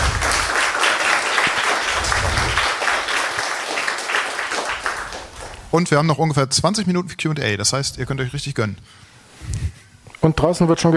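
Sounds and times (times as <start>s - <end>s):
crowd applauding: 0.0s - 5.7s
speech: 5.7s - 9.6s, 10.2s - 10.9s.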